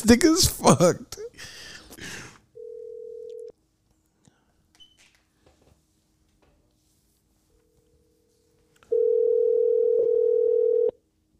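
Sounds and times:
speech: 0:00.0 - 0:01.5
outgoing phone call ringing tone: 0:02.6 - 0:03.5, 0:08.9 - 0:11.0.

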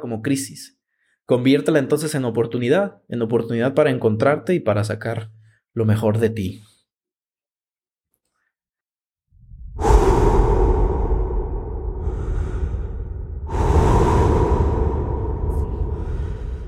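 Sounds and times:
speech: 0:00.0 - 0:06.7
deep breaths drawn slowly: 0:09.5 - 0:16.6.

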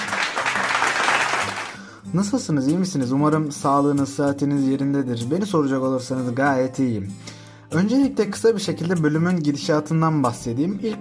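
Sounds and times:
applause sound effect: 0:00.0 - 0:01.8
speech: 0:02.1 - 0:10.9.

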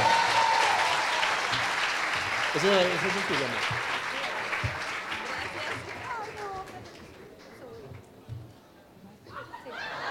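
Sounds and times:
audience applause: 0:00.0 - 0:07.9
speech: 0:02.6 - 0:04.0
laughter: 0:09.3 - 0:10.0.

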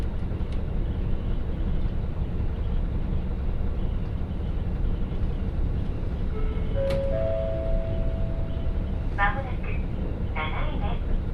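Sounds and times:
Hakodate Main Line train rumble: 0:00.0 - 0:11.3.

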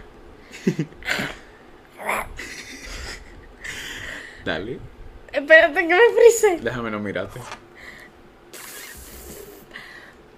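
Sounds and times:
speech: 0:00.6 - 0:01.3, 0:04.4 - 0:07.6
balloon deflating: 0:08.5 - 0:09.7.

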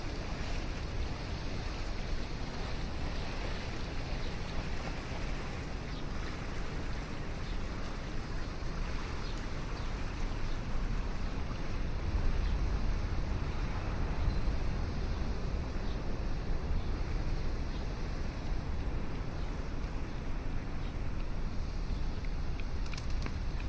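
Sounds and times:
low rumble of city and water along the river in downtown Chicago: 0:00.0 - 0:23.6
faint scattered clicks: 0:22.2 - 0:23.6.

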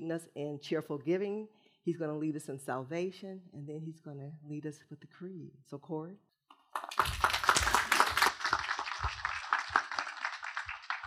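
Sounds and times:
speech: 0:00.1 - 0:07.1
audience clapping: 0:06.5 - 0:11.0.

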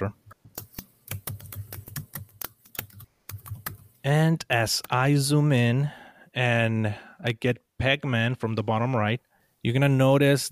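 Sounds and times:
speech: 0:00.0 - 0:00.2, 0:04.0 - 0:10.5
typing on a computer keyboard: 0:00.5 - 0:03.9.

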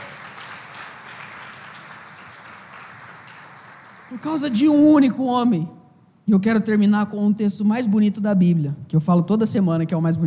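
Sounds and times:
audience applauding loudly: 0:00.0 - 0:04.8
speech: 0:04.1 - 0:10.2.

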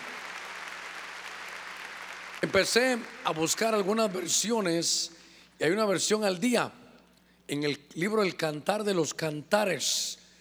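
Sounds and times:
audience clapping hands: 0:00.0 - 0:03.8
speech: 0:02.4 - 0:06.8, 0:07.5 - 0:10.2.

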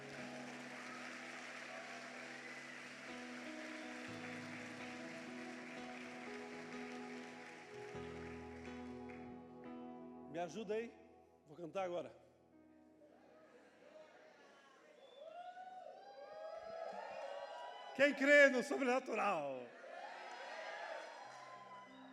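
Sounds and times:
audience applause: 0:00.0 - 0:09.4, 0:16.0 - 0:22.1
sustained keyboard chords: 0:00.0 - 0:13.0
speech: 0:10.4 - 0:11.0, 0:11.6 - 0:12.2, 0:18.0 - 0:19.8.

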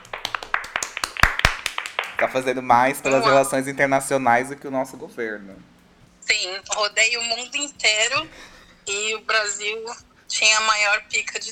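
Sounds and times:
small group clapping: 0:00.0 - 0:04.0
speech: 0:02.2 - 0:05.7, 0:06.4 - 0:11.5.

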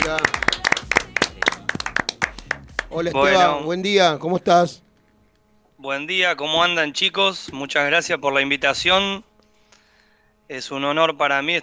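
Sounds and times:
small group clapping in studio: 0:00.0 - 0:03.3
speech: 0:00.1 - 0:00.4, 0:02.9 - 0:04.8, 0:05.8 - 0:09.3, 0:10.5 - 0:11.6.

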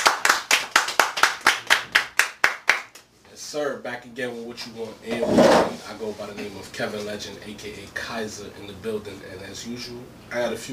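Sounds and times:
people clapping in a steady beat: 0:00.0 - 0:03.1
speech: 0:03.5 - 0:10.7.

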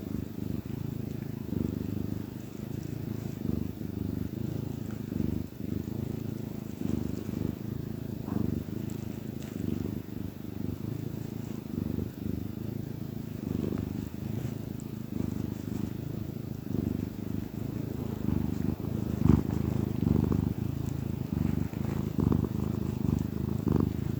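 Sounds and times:
domestic cat purring: 0:00.0 - 0:24.1.

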